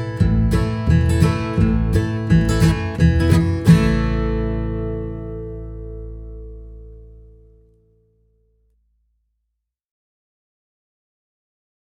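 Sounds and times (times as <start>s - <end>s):
folk tune: 0.0s - 7.8s.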